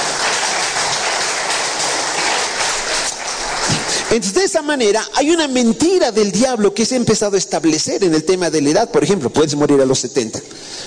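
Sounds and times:
audience applause: 0.0s - 4.4s
speech: 4.1s - 10.8s.

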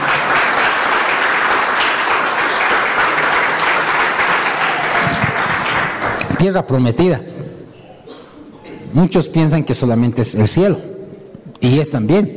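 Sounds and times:
audience applause: 0.0s - 6.6s
speech: 6.4s - 7.3s, 8.9s - 10.9s, 11.6s - 12.3s.

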